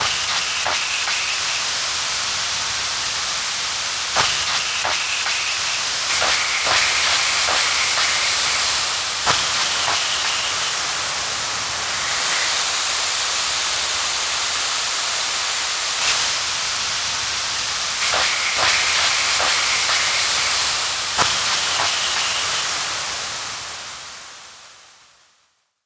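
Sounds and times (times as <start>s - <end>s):
gas: 0.0s - 25.2s.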